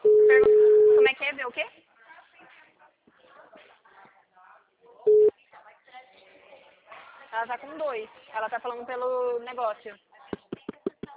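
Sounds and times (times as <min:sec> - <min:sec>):
telephone tone on an unanswered call: 0:00.0 - 0:01.0, 0:05.1 - 0:05.3
speech: 0:07.4 - 0:10.1.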